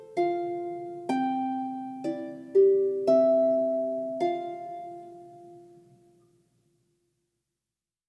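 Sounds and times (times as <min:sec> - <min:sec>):
harp lullaby: 0:00.0 - 0:06.2.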